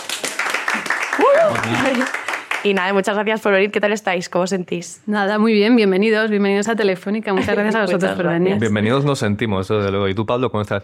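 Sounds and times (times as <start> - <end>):
audience applause: 0.0 - 2.9
speech: 1.2 - 10.8
laughter: 1.3 - 2.2, 7.4 - 8.3.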